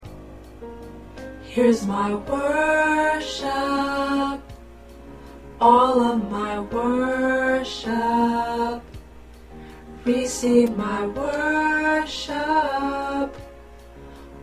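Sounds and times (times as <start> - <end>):
tenor choir part singing: 1.5 - 4.4, 5.6 - 8.8, 10.1 - 13.4.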